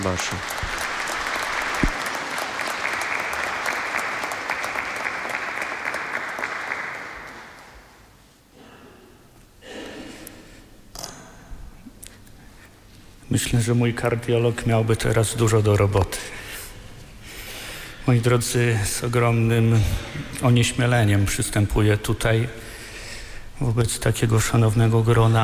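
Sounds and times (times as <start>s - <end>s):
speech: 0.0s - 0.8s, 13.3s - 16.4s, 18.1s - 22.6s, 23.6s - 25.4s
audience applause: 0.0s - 7.7s.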